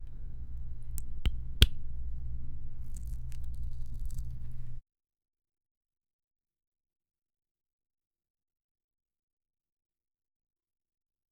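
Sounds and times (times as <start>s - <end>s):
palm touching liquid: 0.0s - 4.8s.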